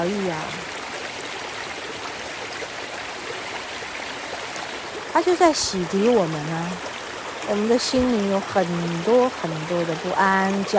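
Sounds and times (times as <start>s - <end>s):
speech: 0.0s - 0.6s, 5.2s - 10.7s
flowing water: 0.0s - 10.7s.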